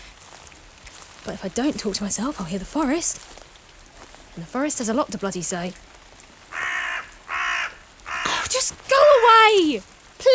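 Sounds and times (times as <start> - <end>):
speech: 1.2 - 3.4, 4.4 - 5.9, 9.5 - 10.3
crow cawing: 6.5 - 8.5.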